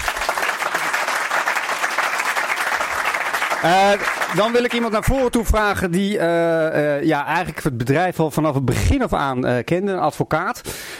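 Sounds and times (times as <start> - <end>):
loud audience applause: 0.0 - 5.7
speech: 3.6 - 10.9.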